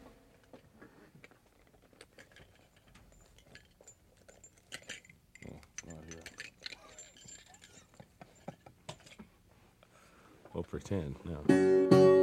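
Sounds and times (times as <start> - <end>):
spark plug wrench handled with ticks, clicks and ratcheting rattles: 1.2 - 9.3
speech: 10.6 - 12.1.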